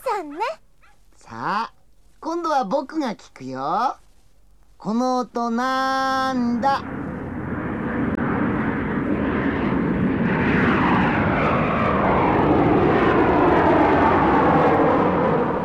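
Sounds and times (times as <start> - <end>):
speech: 0.2 - 0.6, 1.3 - 4.0, 4.8 - 7.0
jet airplane: 6.3 - 15.6.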